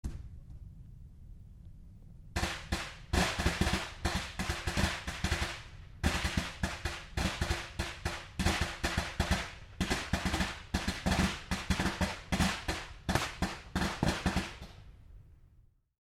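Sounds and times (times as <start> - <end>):
firecracker: 2.4 - 15.1.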